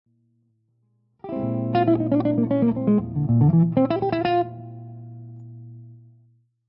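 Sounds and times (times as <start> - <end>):
lydian dominant melodic lines: 1.3 - 5.0.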